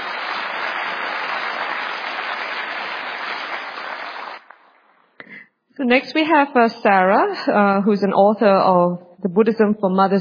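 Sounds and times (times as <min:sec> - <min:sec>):
audience applause: 0:00.0 - 0:04.9
speech: 0:05.8 - 0:10.2.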